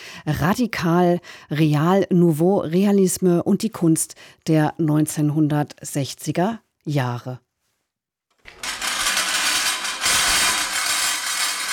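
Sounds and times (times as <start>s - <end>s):
speech: 0.2s - 7.4s
motorized scrap-metal sculpture clattering and whirring: 8.4s - 11.7s.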